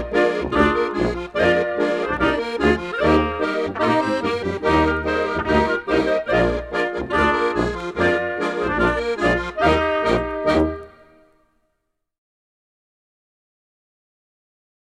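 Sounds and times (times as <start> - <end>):
Munich polka: 0.0 - 11.3.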